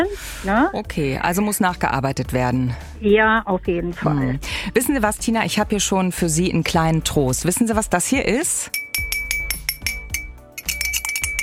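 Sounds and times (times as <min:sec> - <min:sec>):
speech: 0:00.0 - 0:08.8
cup being struck, clinking like a small bell: 0:08.7 - 0:11.4.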